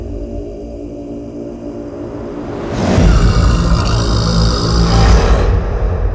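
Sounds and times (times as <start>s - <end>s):
intro chant: 2.4s - 6.0s.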